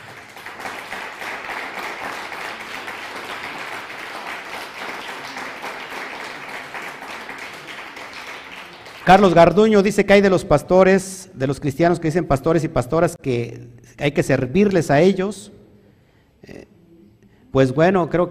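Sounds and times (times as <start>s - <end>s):
audience applause: 0.0s - 9.3s
speech: 9.1s - 15.6s, 16.4s - 16.7s, 17.5s - 18.2s.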